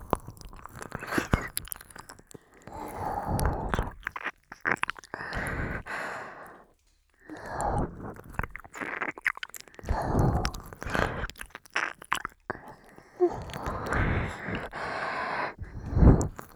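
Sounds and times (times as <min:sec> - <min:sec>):
oil ear licking recorded with a binaural microphone: 0:00.0 - 0:06.6, 0:07.2 - 0:16.5.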